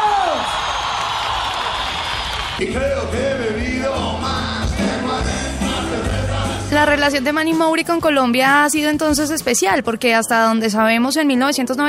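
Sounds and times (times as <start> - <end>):
high whoop sliding downward in pitch: 0.0 - 2.6
large crowd applauding: 0.0 - 2.8
large crowd cheering and shouting: 0.0 - 6.6
speech: 2.6 - 5.3, 6.7 - 11.8.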